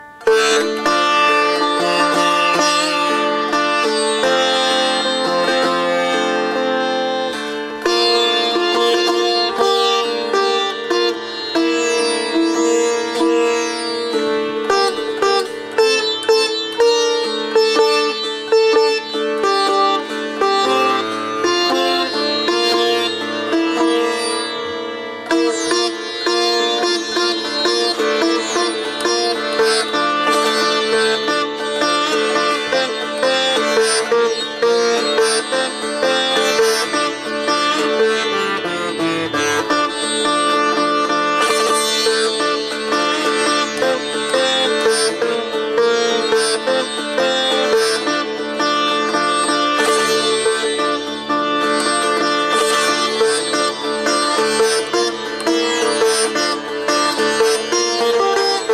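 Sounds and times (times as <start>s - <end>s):
sitar: 0.0s - 58.7s.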